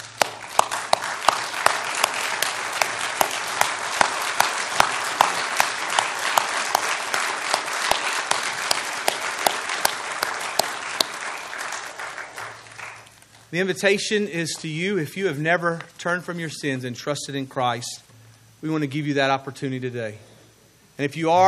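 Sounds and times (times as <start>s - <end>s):
audience applause: 0.0s - 13.1s
speech: 13.5s - 20.3s, 21.0s - 21.4s.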